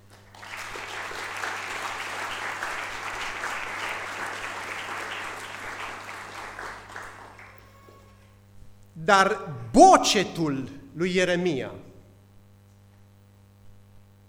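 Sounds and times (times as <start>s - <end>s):
audience applause: 0.0s - 8.2s
speech: 9.0s - 11.8s.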